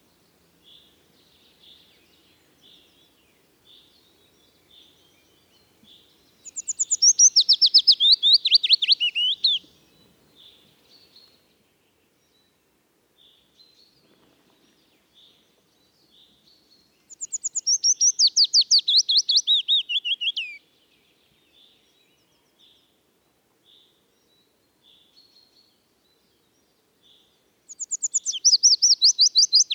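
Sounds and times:
willow warbler singing: 0:00.6 - 0:11.3, 0:17.0 - 0:20.6, 0:26.5 - 0:29.7.

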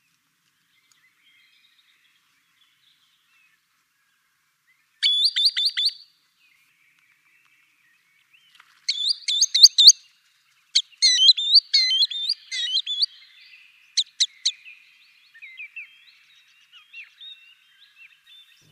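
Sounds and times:
green sandpiper calling: 0:05.0 - 0:06.0, 0:08.9 - 0:10.0, 0:10.8 - 0:13.4.

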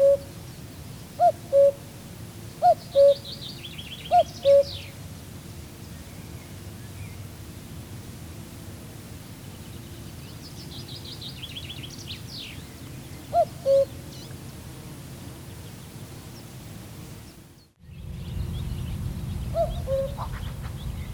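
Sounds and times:
common cuckoo calling: 0:00.0 - 0:00.4, 0:01.2 - 0:01.9, 0:02.6 - 0:05.0, 0:12.4 - 0:14.3, 0:19.5 - 0:20.6.

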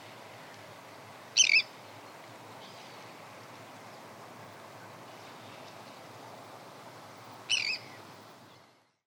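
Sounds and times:
Arctic tern calling: 0:01.4 - 0:01.8, 0:07.5 - 0:08.0.

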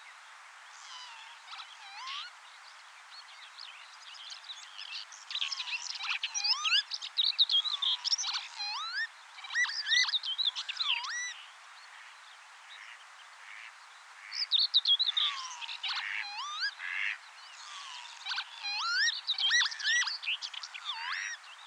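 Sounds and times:
lapwing calling: 0:00.7 - 0:02.3, 0:05.3 - 0:06.9, 0:07.5 - 0:11.3, 0:15.1 - 0:21.4.

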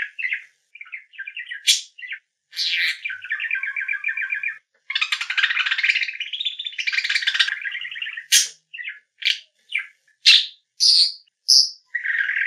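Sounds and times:
budgerigar voice: 0:00.0 - 0:12.4.

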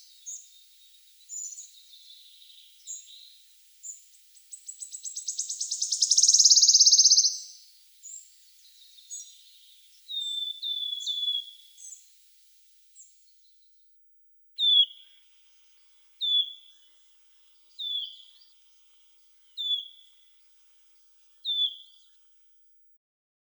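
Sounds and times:
wood warbler singing: 0:00.0 - 0:12.3, 0:14.6 - 0:18.8, 0:19.4 - 0:20.6, 0:21.4 - 0:22.2.

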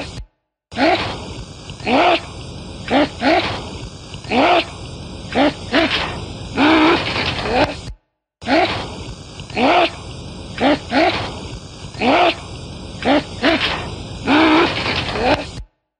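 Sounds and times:
voice: 0:00.8 - 0:01.2, 0:01.8 - 0:02.3, 0:02.9 - 0:03.5, 0:04.2 - 0:07.8, 0:08.4 - 0:08.8, 0:09.5 - 0:10.0, 0:10.6 - 0:11.3, 0:12.0 - 0:15.5.

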